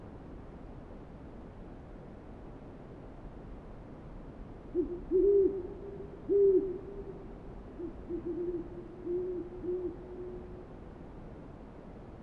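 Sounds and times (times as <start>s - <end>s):
owl hooting: 4.8s - 7.2s, 7.8s - 10.5s.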